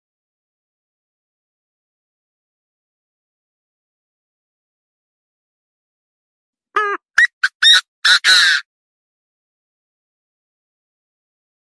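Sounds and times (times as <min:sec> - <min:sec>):
partridge giving nasal note and harsh squawks: 0:06.8 - 0:08.6.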